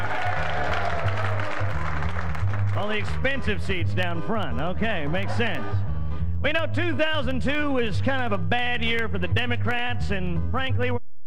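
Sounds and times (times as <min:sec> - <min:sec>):
studio audience at a political debate show applauding: 0:00.0 - 0:03.2
speech: 0:02.9 - 0:11.0.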